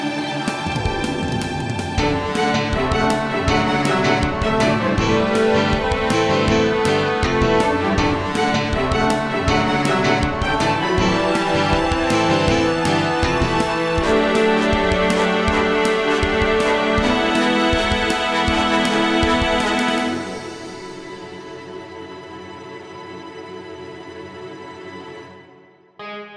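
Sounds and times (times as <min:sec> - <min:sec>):
chiptune music: 0:00.2 - 0:20.5.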